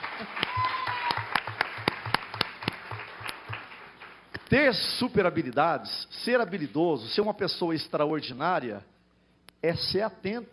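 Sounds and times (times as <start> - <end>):
applause: 0.0 - 4.4
speech: 4.5 - 8.9, 9.6 - 10.5.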